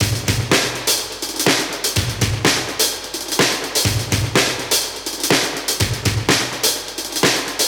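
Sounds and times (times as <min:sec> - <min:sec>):
classic drum breaks at 125 BPM: 0:00.0 - 0:07.6.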